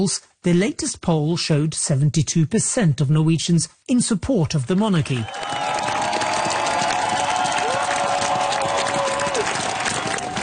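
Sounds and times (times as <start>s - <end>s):
speech: 0.0s - 5.6s
crowd cheering the Norwegian royal family at the palace balcony in Oslo: 5.1s - 10.4s.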